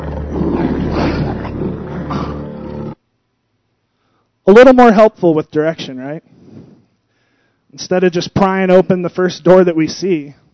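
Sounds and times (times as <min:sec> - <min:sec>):
tiger roaring: 0:00.0 - 0:03.0
speech: 0:04.5 - 0:06.4, 0:07.7 - 0:10.4.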